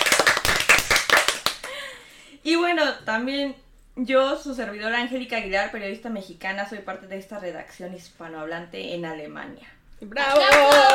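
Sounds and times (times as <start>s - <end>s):
audience applause: 0.0s - 1.7s, 10.4s - 10.9s
speech: 2.5s - 10.9s.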